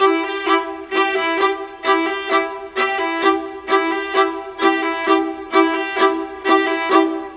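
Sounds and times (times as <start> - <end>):
cinematic viola: 0.0 - 7.3.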